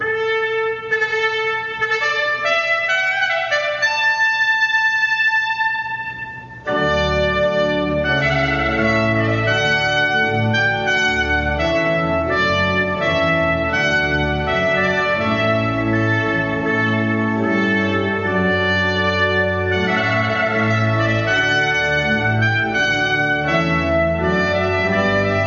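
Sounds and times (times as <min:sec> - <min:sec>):
trumpet piece: 0:00.0 - 0:25.4.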